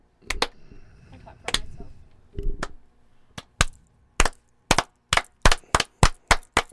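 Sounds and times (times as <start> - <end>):
slow single hand claps: 0.2 - 0.6, 1.5 - 1.8, 2.6 - 2.8, 3.4 - 6.7.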